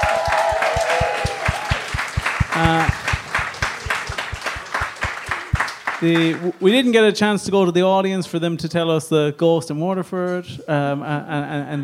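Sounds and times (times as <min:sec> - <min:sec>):
audience applause: 0:00.0 - 0:06.5
speech: 0:02.6 - 0:03.0, 0:06.0 - 0:11.8.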